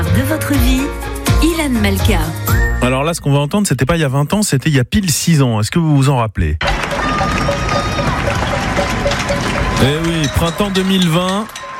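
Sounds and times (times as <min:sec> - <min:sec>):
speech: 0:00.2 - 0:07.4, 0:09.3 - 0:11.6
people applauding nurses from balconies: 0:06.6 - 0:11.7.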